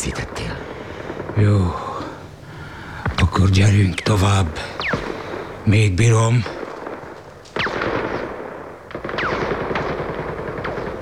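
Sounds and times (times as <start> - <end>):
speech: 0.0 - 0.5, 1.4 - 1.9, 3.4 - 4.9, 5.6 - 6.6
machine gun fire: 6.5 - 11.0.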